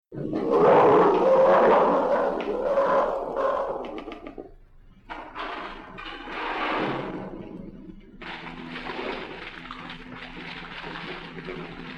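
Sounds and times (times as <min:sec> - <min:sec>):
peccary harsh growling roars: 0:00.1 - 0:04.5.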